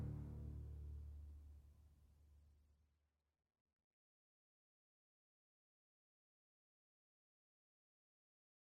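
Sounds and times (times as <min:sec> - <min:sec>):
field background music: 0:00.0 - 0:01.1.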